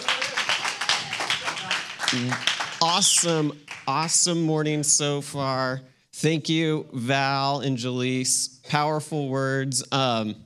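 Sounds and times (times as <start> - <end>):
audience applause welcoming a speaker: 0.0 - 4.0
speech: 2.1 - 10.4.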